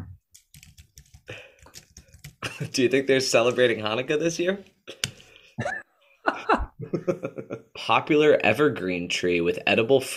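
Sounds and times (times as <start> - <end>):
rapid typing on a computer keyboard: 0.3 - 2.5
speech: 2.6 - 4.7, 7.2 - 10.1
laughter: 5.6 - 7.7.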